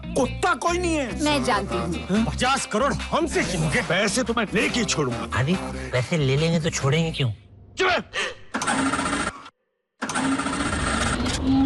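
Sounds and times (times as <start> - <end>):
speech: 0.2 - 9.0
auto rickshaw engine starting: 8.5 - 11.6.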